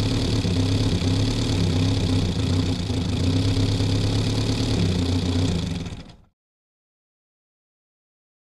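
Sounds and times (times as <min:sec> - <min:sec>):
Austin Ruby engine starting up from interior: 0:00.0 - 0:06.3.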